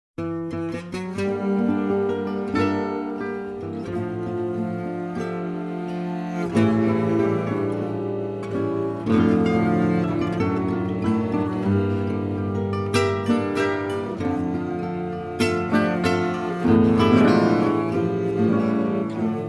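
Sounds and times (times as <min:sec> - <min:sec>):
two guitars playing: 0:00.2 - 0:19.4.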